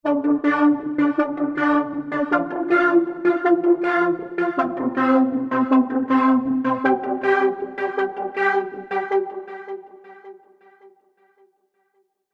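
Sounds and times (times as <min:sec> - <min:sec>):
Serum synth sequenced arpeggio: 0:00.0 - 0:09.9.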